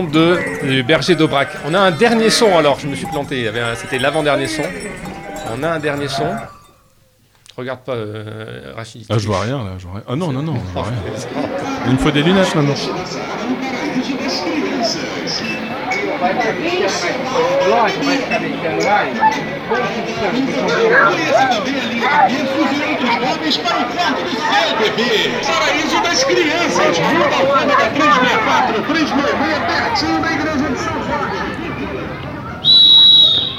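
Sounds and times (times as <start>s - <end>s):
speech: 0.0s - 6.6s, 7.6s - 13.3s, 16.2s - 31.4s
street soundscape in Rio de Janeiro: 0.0s - 7.6s, 10.5s - 33.5s.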